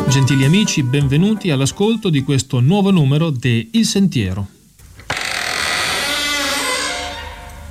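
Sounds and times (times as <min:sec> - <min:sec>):
speech: 0:00.1 - 0:04.6
old door creaking open: 0:05.0 - 0:07.7.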